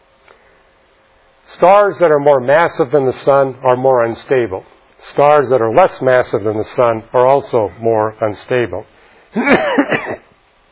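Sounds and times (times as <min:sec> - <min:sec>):
speech: 0:01.6 - 0:10.3
hacking coughs from asthma after a morning run: 0:09.4 - 0:10.4
throat clearing from asthma after a morning run: 0:09.4 - 0:10.4.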